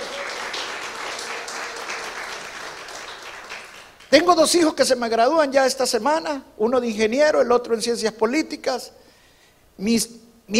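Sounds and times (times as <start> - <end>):
audience applause: 0.0 - 4.1
speech: 4.1 - 9.0, 9.8 - 10.5.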